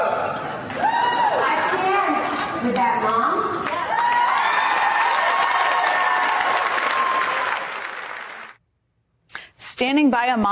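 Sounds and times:
crowd cheering and applauding: 0:00.0 - 0:02.7, 0:03.5 - 0:08.6
speech: 0:02.6 - 0:03.3, 0:09.8 - 0:10.5.

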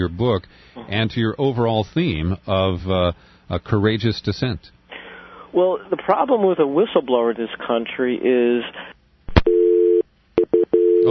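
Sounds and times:
speech: 0:00.0 - 0:04.8, 0:05.5 - 0:09.0
telephone busy signal after a dropped caller: 0:09.4 - 0:11.0.

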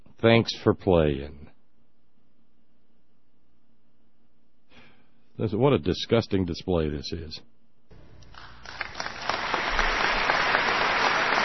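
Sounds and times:
speech: 0:00.2 - 0:01.4, 0:05.4 - 0:07.5
audience applause: 0:08.3 - 0:11.4.

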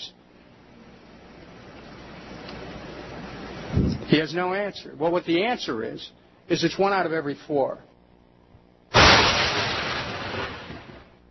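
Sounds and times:
speech: 0:04.1 - 0:07.9
lightning bolt strike: 0:08.9 - 0:11.2.

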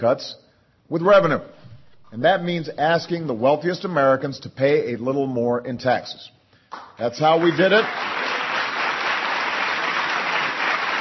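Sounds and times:
speech: 0:00.0 - 0:08.2
crowd applause at a political speech: 0:07.3 - 0:10.9.

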